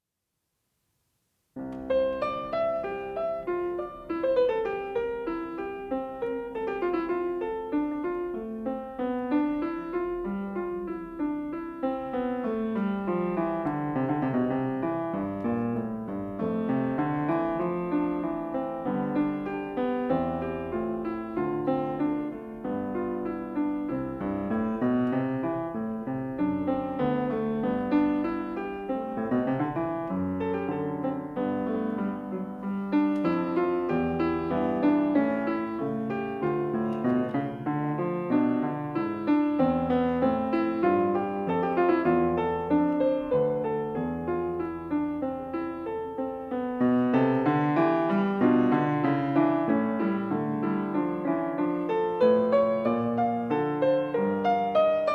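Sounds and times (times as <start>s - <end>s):
prelude and fugue: 1.4s - 55.1s.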